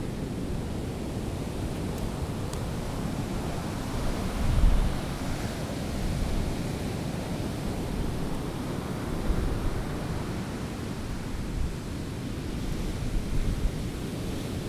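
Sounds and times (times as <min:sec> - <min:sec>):
sea at Gandoca: 0:00.0 - 0:14.6.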